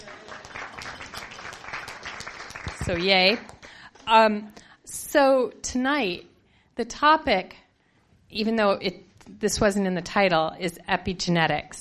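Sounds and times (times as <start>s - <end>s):
audience applause at a science cafe: 0.0s - 4.2s
speech: 2.9s - 3.5s, 4.1s - 7.6s, 8.3s - 11.7s.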